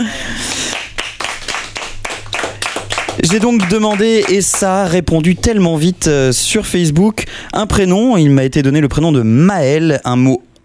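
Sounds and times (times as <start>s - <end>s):
audience applause: 0.4s - 4.8s
speech: 3.2s - 10.5s.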